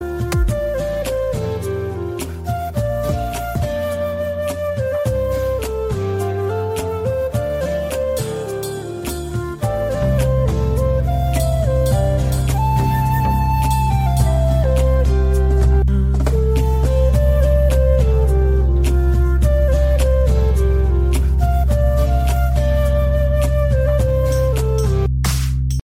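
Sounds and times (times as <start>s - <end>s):
Bollywood flute: 0.0s - 25.1s.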